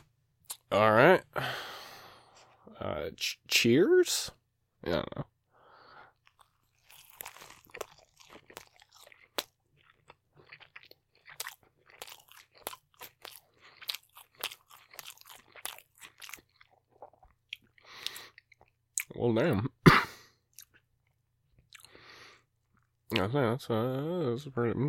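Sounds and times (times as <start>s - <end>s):
speech: 0.7s - 1.5s, 3.1s - 5.3s, 19.3s - 19.7s, 23.2s - 24.8s
biting and chewing a burger: 6.1s - 19.2s, 20.4s - 23.2s.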